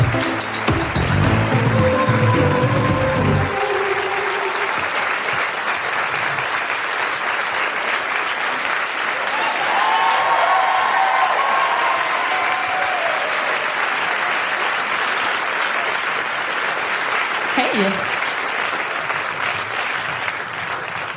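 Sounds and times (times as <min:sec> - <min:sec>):
crowd applause: 0:00.0 - 0:21.1
faint whistles and cheers: 0:09.2 - 0:14.2.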